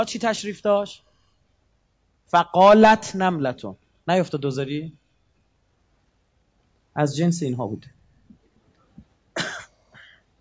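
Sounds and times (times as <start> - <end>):
speech: 0.0 - 1.1, 2.3 - 5.0, 7.0 - 8.0
person coughing: 9.4 - 10.2.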